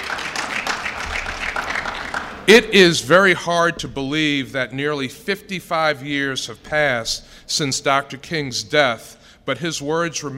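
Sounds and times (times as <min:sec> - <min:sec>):
audience applause for honorees: 0:00.0 - 0:02.5
speech: 0:02.5 - 0:10.3.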